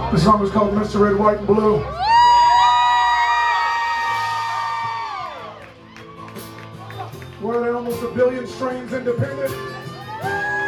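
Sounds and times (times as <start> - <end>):
speech: 0.1 - 2.1, 8.2 - 10.4
live audience cheering and whooping: 2.0 - 7.2, 10.0 - 10.6.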